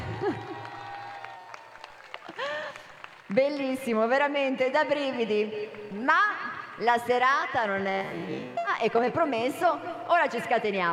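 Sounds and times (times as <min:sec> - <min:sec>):
audience applause in a town square: 0:00.0 - 0:03.3
speech: 0:03.3 - 0:10.9.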